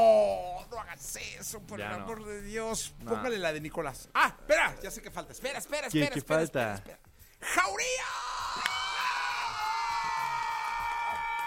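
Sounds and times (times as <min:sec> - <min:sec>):
speech: 0:00.9 - 0:08.3
sharp shout: 0:07.4 - 0:11.4
crowd cheering and screaming: 0:08.0 - 0:11.4.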